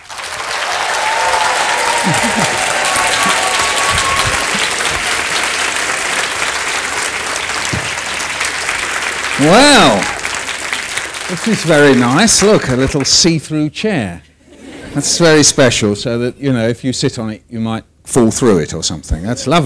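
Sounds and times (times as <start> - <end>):
large crowd applauding: 0.0 - 13.2
whoops: 0.5 - 5.2, 9.5 - 10.3
laughter: 1.7 - 5.3, 14.4 - 15.4
speech: 2.1 - 3.2, 9.4 - 10.1, 11.3 - 14.3, 15.0 - 19.6.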